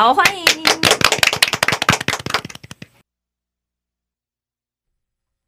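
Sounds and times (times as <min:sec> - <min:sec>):
speech: 0:00.0 - 0:00.4
warm applause: 0:00.2 - 0:02.9.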